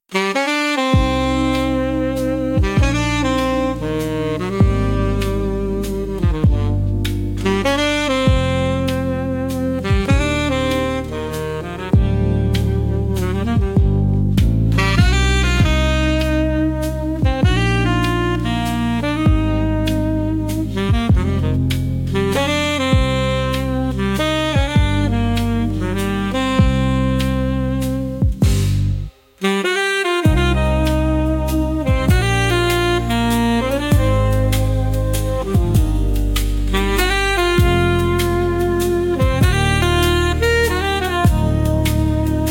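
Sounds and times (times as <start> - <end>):
saxophone: 0.0 - 42.4.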